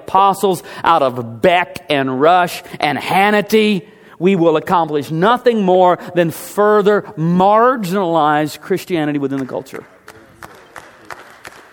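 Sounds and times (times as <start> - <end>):
speech: 0.1 - 9.9
two people clapping: 9.3 - 11.7.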